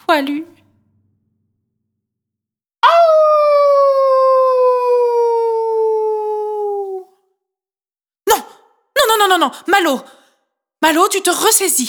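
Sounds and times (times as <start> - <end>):
speech: 0.1 - 0.6, 9.3 - 10.2, 10.8 - 11.8
lone wolf howling: 2.8 - 7.1.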